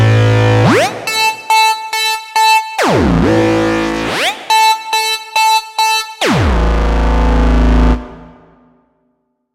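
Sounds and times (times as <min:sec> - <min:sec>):
synth: 0:00.1 - 0:08.4.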